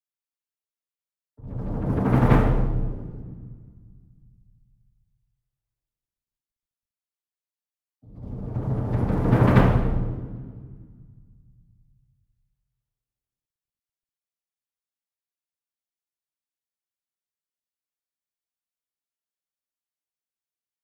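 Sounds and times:
single 66 Inch drum roll with medium soft beater: 0:01.4 - 0:03.9, 0:08.2 - 0:11.2.

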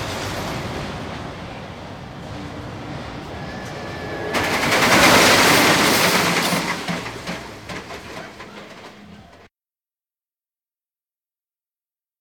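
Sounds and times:
rollercoaster ride: 0:00.0 - 0:09.5.

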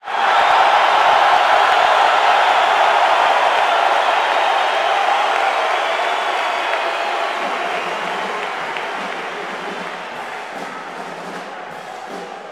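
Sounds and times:
basketball crowd cheering: 0:00.0 - 0:12.4.

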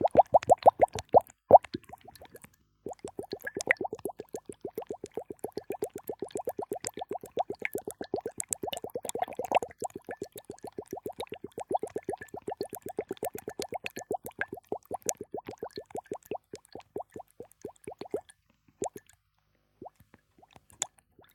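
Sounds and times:
bubbles: 0:00.0 - 0:19.1.

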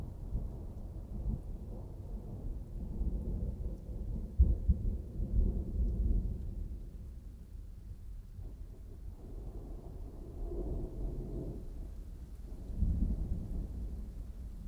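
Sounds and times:
dry extended thunderstorm: 0:00.0 - 0:14.6.

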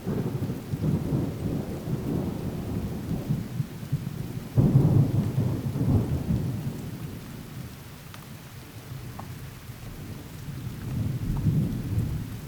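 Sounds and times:
thunder: 0:00.0 - 0:07.1, 0:10.0 - 0:12.4
light rain: 0:00.0 - 0:12.4.

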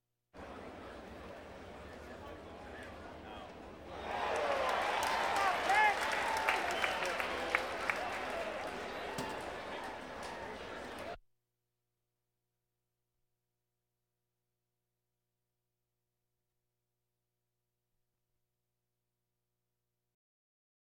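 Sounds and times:
crowds: 0:00.4 - 0:11.2.

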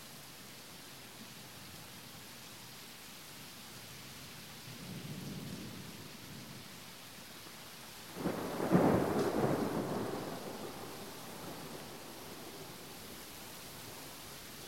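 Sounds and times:
heavy rain under a bridge: 0:00.0 - 0:14.6
thunder: 0:08.2 - 0:12.8.

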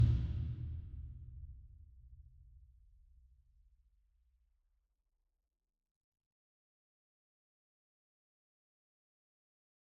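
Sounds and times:
single 60 inch taiko drum hit with whip beater: 0:00.0 - 0:00.9.

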